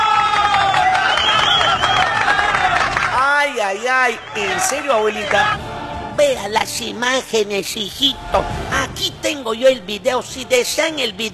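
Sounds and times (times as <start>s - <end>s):
crowd cheering and applause: 0.0s - 6.2s
speech: 3.7s - 11.3s.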